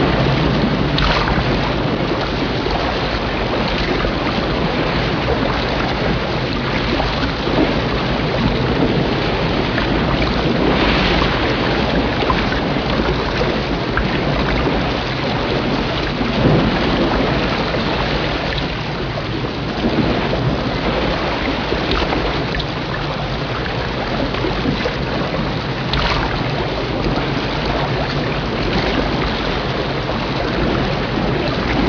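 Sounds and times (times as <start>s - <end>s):
rolling sea waves: 0.0s - 31.8s.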